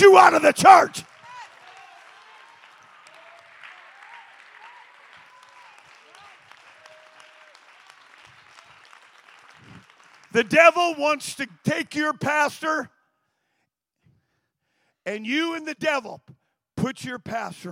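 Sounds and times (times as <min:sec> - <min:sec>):
speech: 0:00.0 - 0:01.1, 0:10.3 - 0:13.0, 0:15.1 - 0:17.6
audience clapping: 0:00.0 - 0:12.2.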